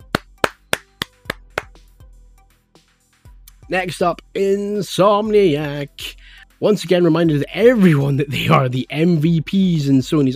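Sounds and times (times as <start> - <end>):
fast hand claps: 0.0 - 1.8
speech: 3.7 - 10.3.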